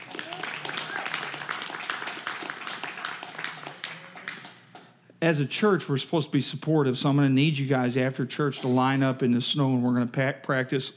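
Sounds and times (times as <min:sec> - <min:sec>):
audience giving a round of applause: 0:00.0 - 0:04.6
speech: 0:05.2 - 0:10.9.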